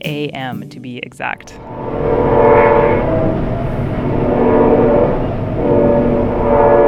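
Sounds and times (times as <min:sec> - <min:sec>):
speech: 0:00.0 - 0:02.2
train rumbling past at night near tracks: 0:01.2 - 0:06.8
faint horn-like tone: 0:01.6 - 0:06.8.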